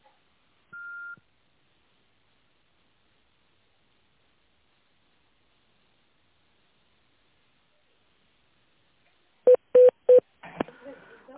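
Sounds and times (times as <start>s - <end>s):
phone keypad dialing tones: 9.5s - 10.2s.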